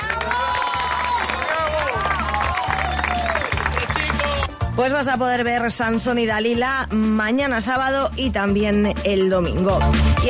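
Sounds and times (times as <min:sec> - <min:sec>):
audience applause: 0:00.0 - 0:04.6
speech: 0:04.8 - 0:10.2.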